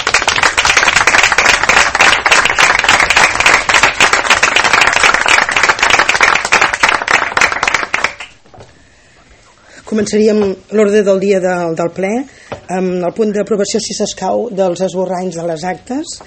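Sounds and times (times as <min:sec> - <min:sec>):
audience applause: 0:00.0 - 0:08.4
speech: 0:09.9 - 0:16.2.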